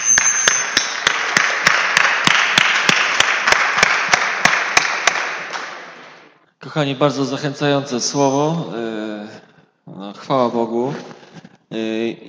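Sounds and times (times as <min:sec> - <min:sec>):
crowd applauding: 0:00.0 - 0:06.0
speech: 0:06.7 - 0:12.2.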